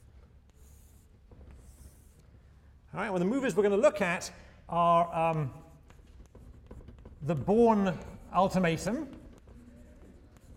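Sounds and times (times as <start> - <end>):
writing strokes while drawing a game diagram during a lecture: 0.0 - 2.5, 5.1 - 10.5
speech: 2.9 - 5.6, 7.2 - 9.2.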